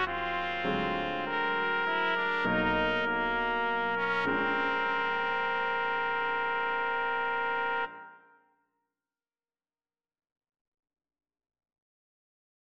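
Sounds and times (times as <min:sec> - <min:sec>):
blues music: 0:00.0 - 0:07.8.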